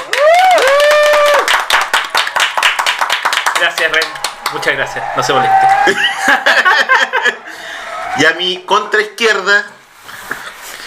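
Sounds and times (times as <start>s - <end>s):
audience applause: 0.0s - 6.5s
crowd whooping and cheering: 0.0s - 8.4s
speech: 3.6s - 9.8s
laughter: 3.9s - 8.0s.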